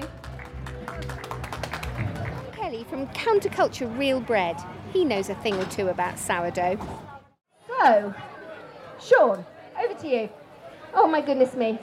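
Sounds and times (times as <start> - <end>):
round of applause: 0.0 - 2.6
speech: 2.9 - 7.1, 7.8 - 8.3, 9.0 - 11.8.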